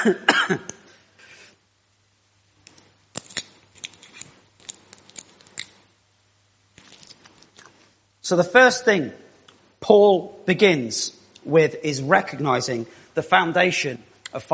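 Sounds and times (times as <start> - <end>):
speech: 0.0 - 0.8, 8.3 - 9.2, 9.8 - 14.5
sweet wrapper crinkling as it is torn open: 2.7 - 5.8, 6.7 - 7.9.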